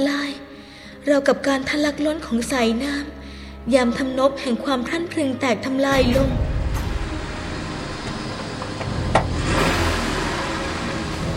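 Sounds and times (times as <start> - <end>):
speech: 1.0 - 6.5
car accelerating away: 6.4 - 11.3.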